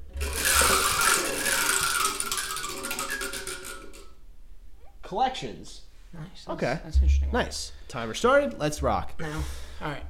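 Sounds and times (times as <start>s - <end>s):
spinning wheel clicking: 0.0s - 4.2s
speech: 5.1s - 10.0s.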